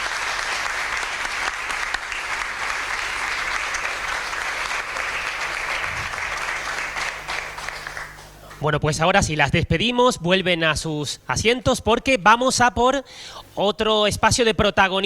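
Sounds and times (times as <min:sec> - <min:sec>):
audience applause: 0:00.0 - 0:08.6
speech: 0:08.6 - 0:15.0.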